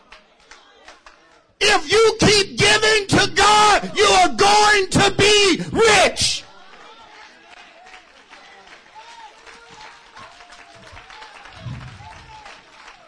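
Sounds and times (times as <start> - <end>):
audience clapping: 0.0 - 1.5, 6.5 - 13.0
speech: 1.7 - 6.3.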